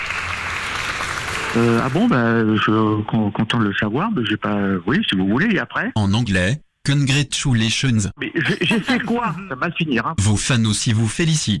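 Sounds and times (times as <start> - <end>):
recorded applause played by an automated phone message: 0.0 - 2.4
speech: 1.5 - 11.5
laughter: 8.2 - 9.5.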